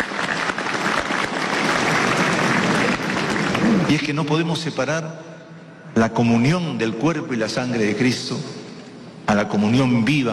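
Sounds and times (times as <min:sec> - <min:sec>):
audience applauding: 0:00.0 - 0:04.3
speech: 0:03.9 - 0:05.3, 0:06.0 - 0:08.6, 0:09.3 - 0:10.3.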